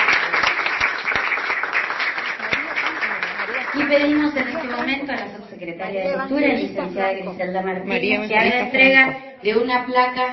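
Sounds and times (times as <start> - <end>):
audience applause: 0.0 - 5.0
speech: 3.8 - 10.3.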